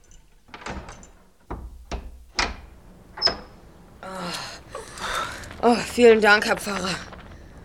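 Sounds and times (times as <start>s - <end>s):
door being unlocked with a key: 0.0s - 3.5s
door rattling scrape: 0.0s - 7.6s
speech: 5.6s - 7.1s.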